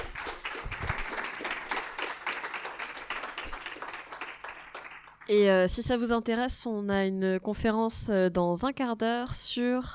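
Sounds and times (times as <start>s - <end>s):
audience applauding after a conference talk: 0.0s - 5.3s
speech: 5.3s - 9.9s.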